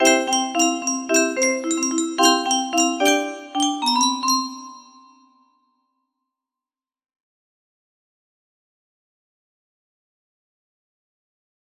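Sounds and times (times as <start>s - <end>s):
annoying ringtone: 0.0s - 5.4s.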